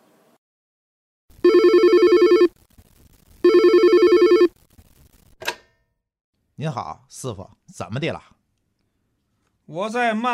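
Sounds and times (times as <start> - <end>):
telephone ringing: 1.4 - 2.5, 3.4 - 4.5
speech: 6.6 - 8.4, 9.7 - 10.3.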